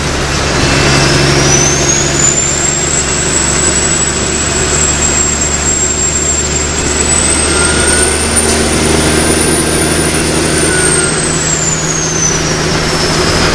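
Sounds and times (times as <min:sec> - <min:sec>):
car engine cruising: 0:00.0 - 0:13.5.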